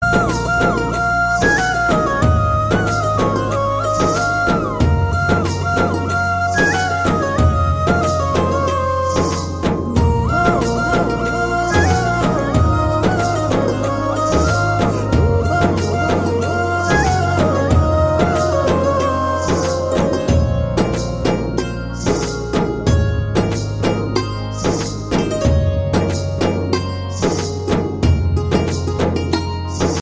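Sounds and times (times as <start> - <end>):
romantic background music: 0.0 - 29.9.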